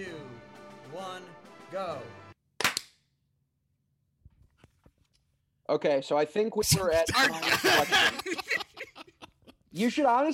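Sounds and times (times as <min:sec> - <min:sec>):
speech: 0:00.9 - 0:02.2, 0:05.7 - 0:09.1, 0:09.8 - 0:10.3
hand clap for audio sync: 0:02.6 - 0:02.9
laughter: 0:06.7 - 0:10.3.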